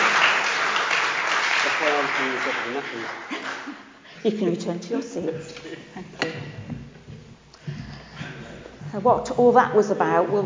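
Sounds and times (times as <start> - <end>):
audience applause: 0.0 - 3.8
speech: 1.8 - 6.9, 8.9 - 10.4.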